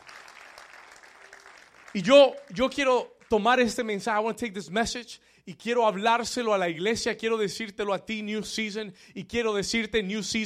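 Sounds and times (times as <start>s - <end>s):
audience applause: 0.0s - 2.6s
speech: 2.0s - 10.4s.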